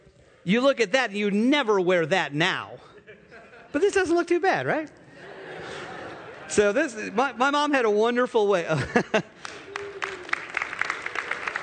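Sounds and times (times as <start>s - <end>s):
speech: 0.4s - 2.9s, 3.7s - 5.0s, 6.5s - 9.4s
laughter: 2.8s - 4.1s, 5.0s - 7.5s, 8.6s - 10.4s
audience applause: 9.4s - 11.6s.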